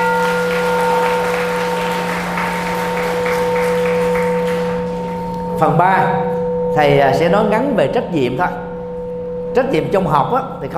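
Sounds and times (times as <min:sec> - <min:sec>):
audience applause: 0:00.0 - 0:05.2
electrical hum from a sound system: 0:00.0 - 0:10.7
speech: 0:05.6 - 0:08.6, 0:09.6 - 0:10.7.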